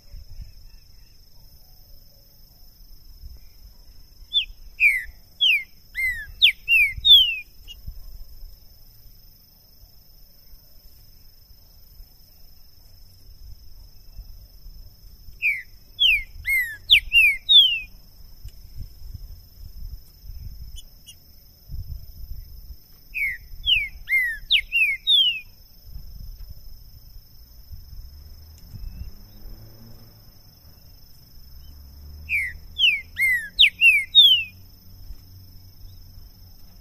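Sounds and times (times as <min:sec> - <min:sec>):
green-winged saltator whistled song: 0:03.3 - 0:07.8, 0:15.4 - 0:18.0, 0:23.1 - 0:25.6, 0:28.7 - 0:29.4, 0:31.6 - 0:34.6.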